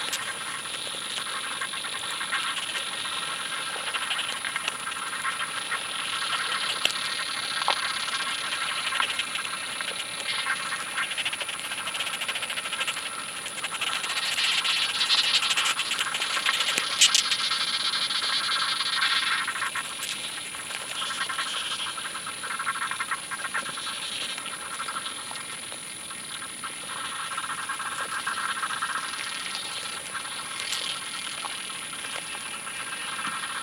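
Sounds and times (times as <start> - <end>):
summer chirring and hiss at Badbury Rings Dorset: 0.0 - 33.6.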